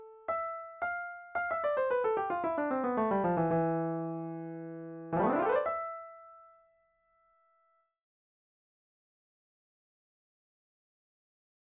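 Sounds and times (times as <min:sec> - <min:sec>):
piano: 0:00.0 - 0:07.8.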